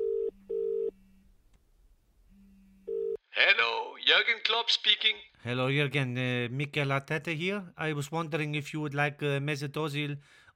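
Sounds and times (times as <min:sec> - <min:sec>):
telephone dialing tones: 0:00.0 - 0:01.0
speech: 0:03.4 - 0:10.4.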